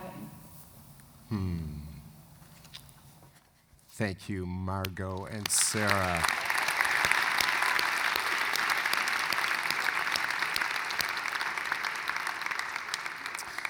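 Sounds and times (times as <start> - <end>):
speech: 1.3 - 1.8, 4.0 - 6.4
audience clapping: 4.7 - 13.6.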